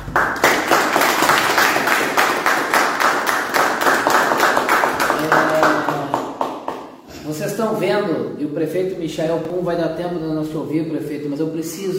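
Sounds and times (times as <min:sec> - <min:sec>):
audience clapping: 0:00.0 - 0:07.0
speech: 0:07.4 - 0:11.9.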